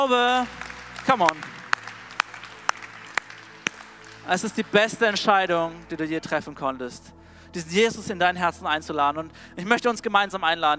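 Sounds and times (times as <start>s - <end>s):
speech: 0.0s - 1.6s, 4.2s - 10.7s
audience applause in church: 0.0s - 5.2s.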